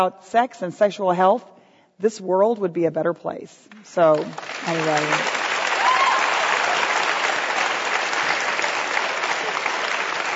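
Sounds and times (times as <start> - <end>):
speech: 0.0 - 5.4
audience applause: 4.3 - 10.3.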